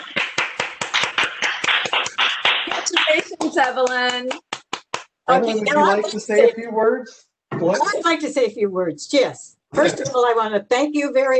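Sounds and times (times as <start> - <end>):
commission members clapping at a civic meeting honoring an award recipient: 0.0 - 5.6
speech: 3.1 - 4.4, 5.3 - 11.3.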